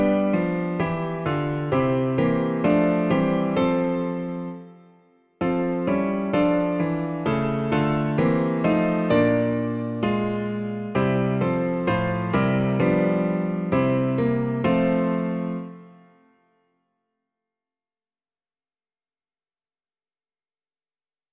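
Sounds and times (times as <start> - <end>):
piano version of a hymn: 0.0 - 16.6.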